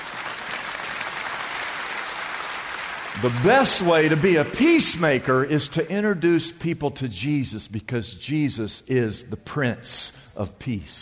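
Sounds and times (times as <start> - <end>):
audience clapping: 0.0 - 5.5
speech: 3.2 - 11.0.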